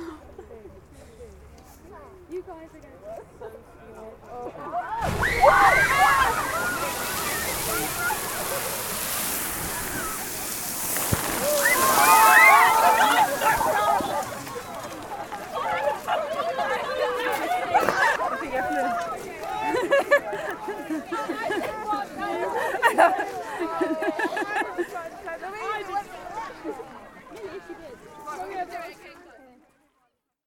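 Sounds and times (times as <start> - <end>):
laughter: 4.4 - 25.2
Strokkur geyser erupting in Iceland: 5.0 - 15.4.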